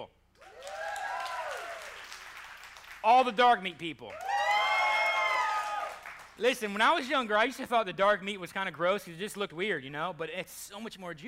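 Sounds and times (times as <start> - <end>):
audience clapping: 0.4 - 6.8
speech: 3.0 - 4.3, 6.4 - 11.2.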